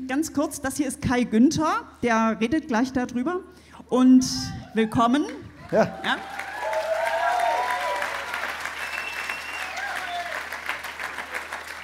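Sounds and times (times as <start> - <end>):
speech: 0.1 - 6.4
audience clapping: 5.3 - 11.8.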